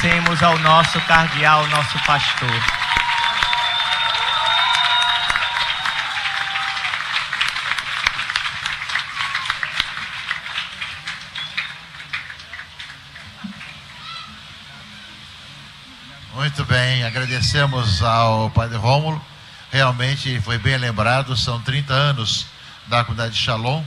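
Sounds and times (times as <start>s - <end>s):
speech: 0.0s - 2.8s, 16.6s - 23.8s
whistles and cheers: 0.0s - 12.7s
warm round of applause from a large crowd: 0.0s - 15.0s.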